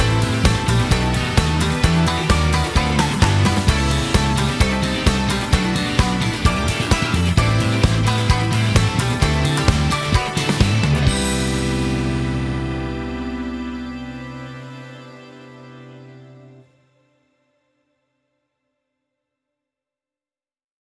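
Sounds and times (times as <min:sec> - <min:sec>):
instrumental music: 0:00.0 - 0:16.6.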